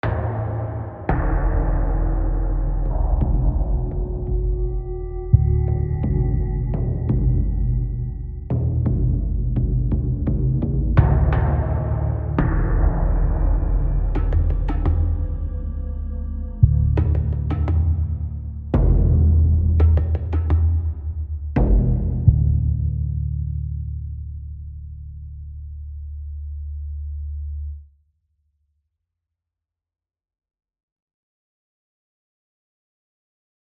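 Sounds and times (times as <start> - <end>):
tension music: 0.0 - 24.8.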